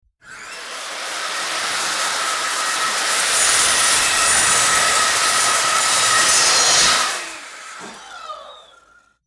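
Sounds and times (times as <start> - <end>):
vacuum cleaner: 0.2 - 9.2.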